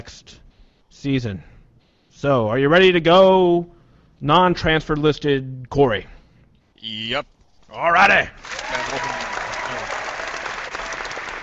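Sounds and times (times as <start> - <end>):
speech: 0.0 - 0.4, 1.0 - 1.5, 2.2 - 6.2, 6.8 - 10.0
crowd applause sound effect: 8.4 - 11.4.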